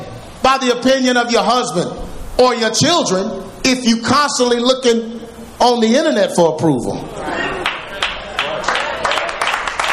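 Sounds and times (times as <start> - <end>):
speech: 0.5 - 7.6
audience clapping: 7.6 - 9.9.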